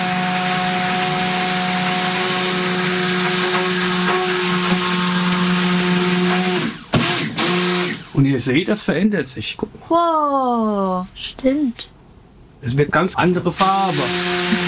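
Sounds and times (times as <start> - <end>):
electric mixer whirring oils and sodium hydroxide solution in a mixing bowl: 0.0 - 8.2, 13.6 - 14.6
speech: 8.4 - 12.0, 12.6 - 14.6.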